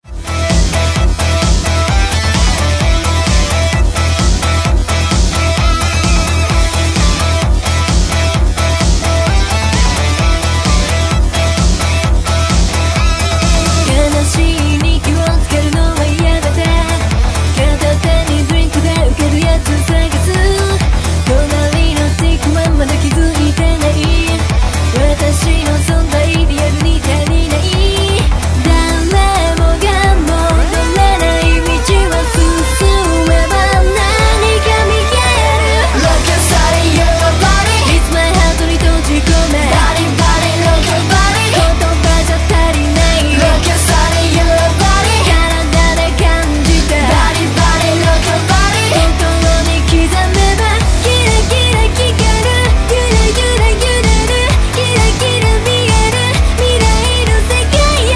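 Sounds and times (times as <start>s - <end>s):
synthwave music: 0.0s - 58.1s.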